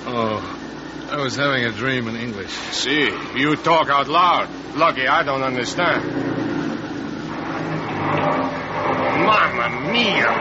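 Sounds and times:
speech: 0.2 - 6.2, 9.9 - 10.4
car engine roaring as wheels spin in mud: 2.6 - 10.4
car wheels spinning in mud: 5.6 - 10.4.

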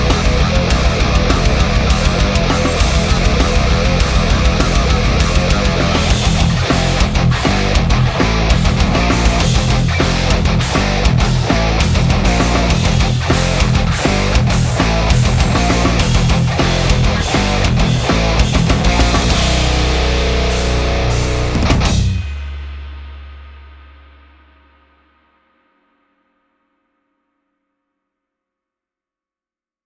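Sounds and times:
KPA high-gain electric guitar: 0.0 - 22.9.

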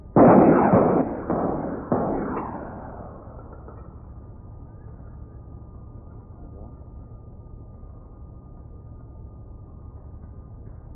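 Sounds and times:
volley of military rockets fired in a naval demonstration: 0.0 - 4.0.

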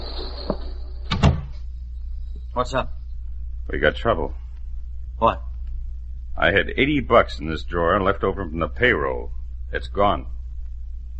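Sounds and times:
low hum: 0.0 - 11.1
door closing: 0.4 - 1.6
speech: 2.6 - 3.0, 3.7 - 4.4, 5.2 - 5.5, 6.4 - 10.4.

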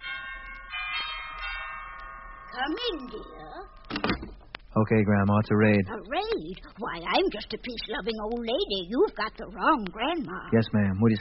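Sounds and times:
cottage doorbell chime: 0.0 - 3.5
speech: 2.5 - 11.2.

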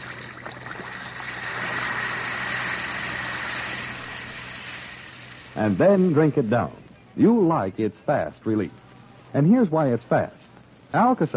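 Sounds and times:
Alka-Seltzer tablet fizzing in a glass of water: 0.0 - 5.7
speech: 5.6 - 11.3.

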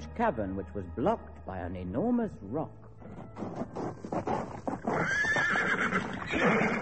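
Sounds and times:
speech: 0.2 - 4.1
horse hooves galloping: 3.0 - 6.8
horse neighing: 4.8 - 6.8.

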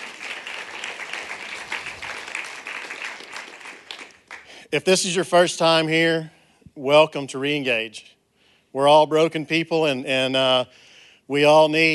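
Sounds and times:
church audience applause after a testimony: 0.0 - 4.6
speech: 4.7 - 8.1, 8.7 - 11.9.

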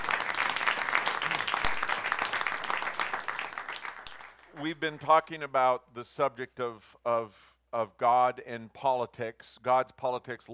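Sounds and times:
audience applause: 0.0 - 4.8
speech: 4.6 - 10.5.

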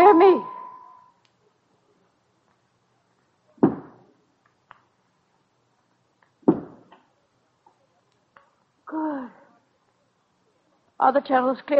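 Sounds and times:
speech: 0.1 - 0.5, 11.0 - 11.7
loud hollow knocks: 3.6 - 4.0, 6.4 - 7.0.

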